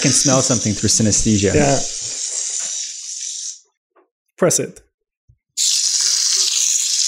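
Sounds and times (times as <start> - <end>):
speech: 0.0 - 2.0, 4.4 - 4.9, 5.6 - 5.9
extruded soy protein frying on a grill: 5.6 - 7.0.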